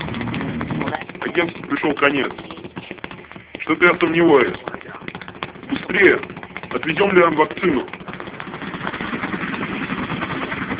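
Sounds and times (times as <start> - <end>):
helicopter engine starting: 0.0 - 1.0, 5.7 - 10.7
speech: 1.3 - 2.5, 3.7 - 4.7, 5.9 - 8.0.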